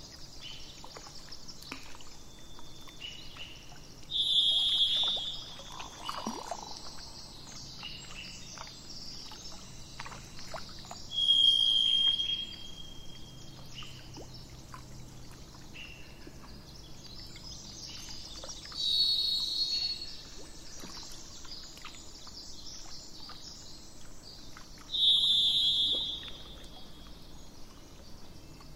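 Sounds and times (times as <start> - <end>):
faint chirps: 0.0 - 28.7
thrush long even whistles: 4.1 - 6.6, 11.1 - 13.2, 25.0 - 26.8.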